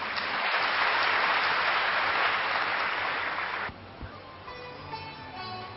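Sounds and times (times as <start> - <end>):
audience applause: 0.0 - 3.8.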